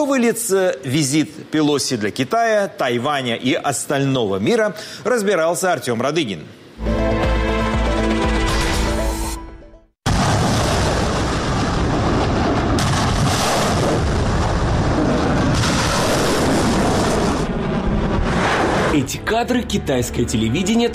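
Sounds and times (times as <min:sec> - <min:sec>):
speech: 0:00.0 - 0:06.9, 0:19.4 - 0:20.9
tonal music: 0:06.8 - 0:10.0
artillery fire during military exercises: 0:10.0 - 0:19.0.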